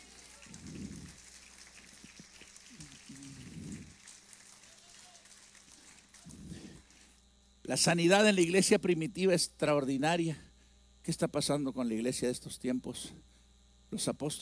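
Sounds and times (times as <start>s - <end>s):
audience applauding: 0.0s - 7.1s
speech: 7.7s - 13.3s, 13.9s - 14.4s.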